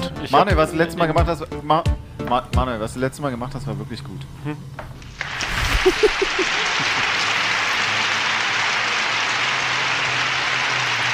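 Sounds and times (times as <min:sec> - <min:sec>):
speech: 0:00.2 - 0:04.9, 0:05.8 - 0:07.0
applause: 0:05.1 - 0:11.1
laughter: 0:05.5 - 0:07.5.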